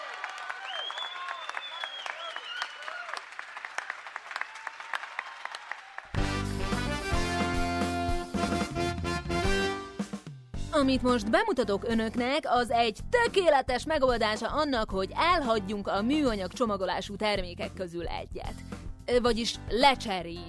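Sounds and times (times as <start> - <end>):
high whoops: 0.0 - 3.2
audience applause: 0.0 - 6.2
loud full music: 6.2 - 10.8
speech: 10.8 - 20.4.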